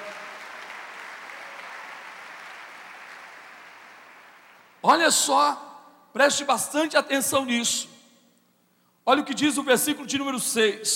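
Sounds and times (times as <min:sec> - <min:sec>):
audience applause: 0:00.0 - 0:04.8
speech: 0:04.8 - 0:08.0, 0:09.1 - 0:10.9.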